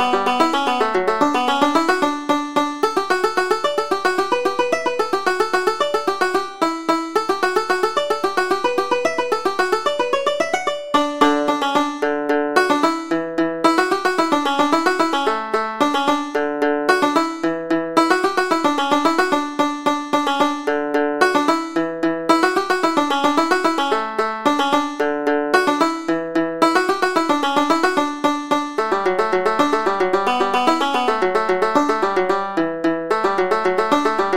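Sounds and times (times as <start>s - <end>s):
hornpipe played on banjo: 0.0s - 34.3s.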